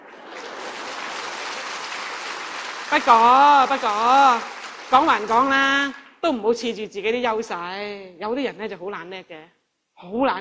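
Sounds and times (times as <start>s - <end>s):
audience applause: 0.0s - 5.9s
speech: 2.9s - 10.3s.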